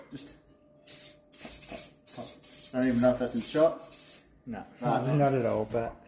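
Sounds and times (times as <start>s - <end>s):
speech: 0.1s - 0.4s, 2.7s - 3.9s, 4.5s - 6.0s
light spritz of cooking oil spray: 0.9s - 4.2s.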